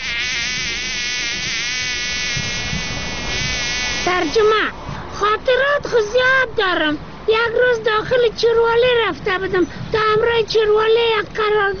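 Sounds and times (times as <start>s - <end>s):
fly buzzing: 0.0s - 4.5s
speech: 4.1s - 11.7s.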